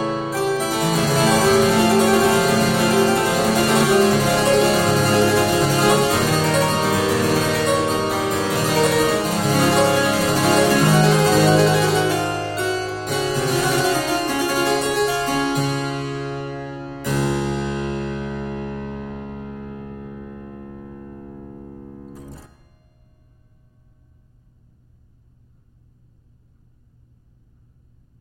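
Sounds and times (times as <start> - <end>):
harpsichord solo fantasia played vivace: 0.0 - 22.5.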